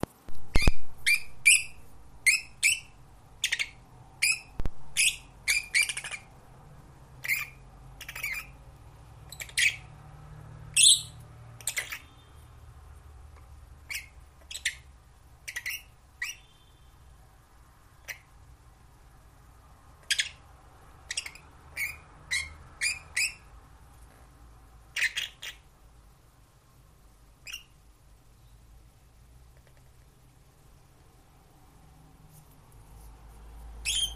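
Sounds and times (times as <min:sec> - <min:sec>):
lovebird parrot singing: 0:00.3 - 0:06.4, 0:07.2 - 0:08.6, 0:09.2 - 0:10.0, 0:10.7 - 0:12.4, 0:13.8 - 0:16.9, 0:18.0 - 0:18.4, 0:20.0 - 0:23.6, 0:24.9 - 0:25.7, 0:27.4 - 0:28.7, 0:33.8 - 0:34.1
parrots calling: 0:00.5 - 0:06.4, 0:07.2 - 0:08.6, 0:09.3 - 0:10.0, 0:10.7 - 0:12.3, 0:13.8 - 0:16.6, 0:18.0 - 0:18.4, 0:20.0 - 0:23.5, 0:24.9 - 0:25.7, 0:27.4 - 0:27.8, 0:33.8 - 0:34.1.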